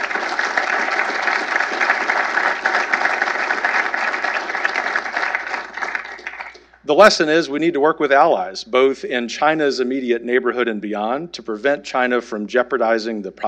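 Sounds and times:
sustained audience applause: 0.0 - 6.7
speech: 6.9 - 13.4.

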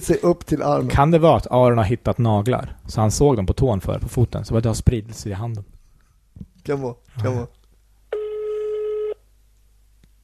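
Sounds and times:
speech: 0.0 - 5.7, 6.6 - 7.6
telephone tone as a call is placed: 8.1 - 9.2.

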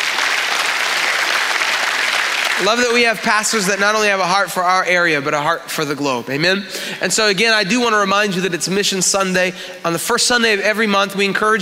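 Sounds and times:
audience applause: 0.0 - 4.1
speech: 2.6 - 11.6.

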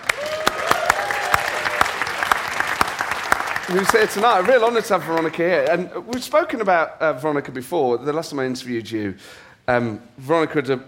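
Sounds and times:
audience applause: 0.0 - 5.5
speech: 3.7 - 10.8.

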